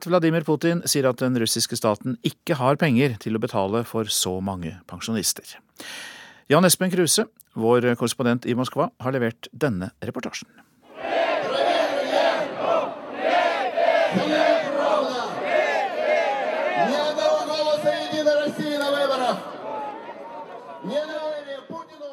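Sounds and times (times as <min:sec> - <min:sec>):
speech: 0:00.0 - 0:11.2
large crowd of protesters chanting slogans: 0:10.9 - 0:20.9.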